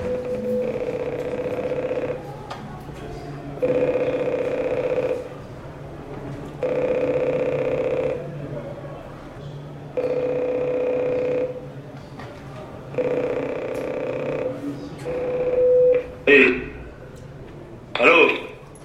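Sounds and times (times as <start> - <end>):
prison cell intercom ringing: 0.0 - 2.3, 3.6 - 5.3, 6.6 - 8.2, 10.0 - 11.6, 12.9 - 16.8.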